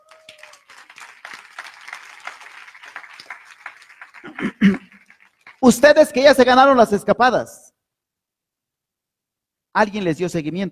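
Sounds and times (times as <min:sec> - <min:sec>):
audience applause: 0:00.0 - 0:05.6
speech: 0:04.3 - 0:04.8, 0:05.6 - 0:07.6, 0:09.8 - 0:10.7.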